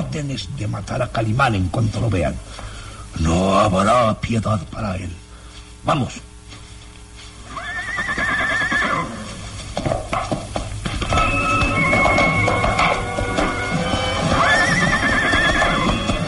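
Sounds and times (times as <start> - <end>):
speech: 0.2 - 5.2, 5.8 - 6.3
hooves clip-clopping and shuffling: 6.5 - 16.2
horses neighing: 7.5 - 9.5, 11.1 - 16.2.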